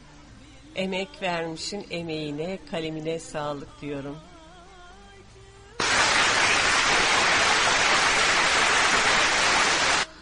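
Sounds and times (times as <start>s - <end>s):
speech: 0.8s - 4.3s
crowd applause: 5.8s - 10.1s.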